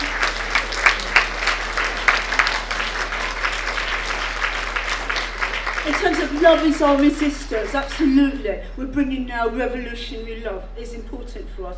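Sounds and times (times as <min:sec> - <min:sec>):
audience clapping hands: 0:00.0 - 0:08.6
speech: 0:05.9 - 0:11.7.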